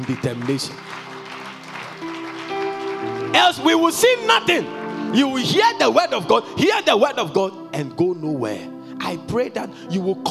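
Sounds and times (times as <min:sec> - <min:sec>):
speech: 0:00.0 - 0:01.1, 0:03.3 - 0:10.3
audience clapping: 0:00.0 - 0:04.6
sustained keyboard or organ notes: 0:00.0 - 0:10.3.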